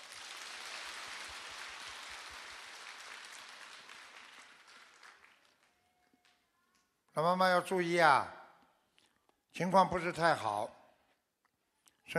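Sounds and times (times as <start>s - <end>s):
audience applause: 0.0s - 6.0s
speech: 7.2s - 8.4s, 9.6s - 10.8s.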